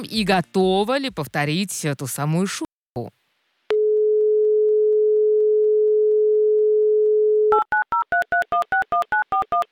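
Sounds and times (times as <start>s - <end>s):
speech: 0.0s - 3.2s
telephone ringing tones: 3.7s - 9.6s.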